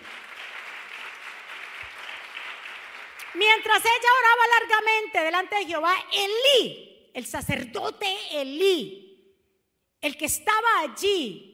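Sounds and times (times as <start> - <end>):
audience applause: 0.0 - 3.4
speech: 3.3 - 9.0, 10.0 - 11.5.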